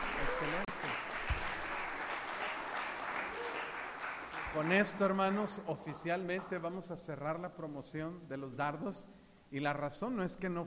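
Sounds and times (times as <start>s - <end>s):
audience applause: 0.0s - 6.5s
speech: 0.4s - 1.0s, 4.6s - 10.6s.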